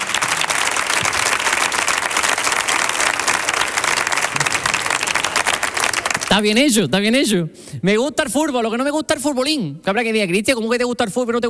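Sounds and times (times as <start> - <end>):
audience applause: 0.0 - 6.5
speech: 6.3 - 11.4.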